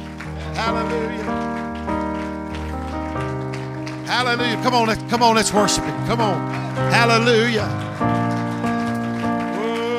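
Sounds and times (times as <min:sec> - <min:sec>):
audience clapping hands: 0:00.0 - 0:09.9
speech: 0:00.6 - 0:01.6, 0:04.1 - 0:08.4.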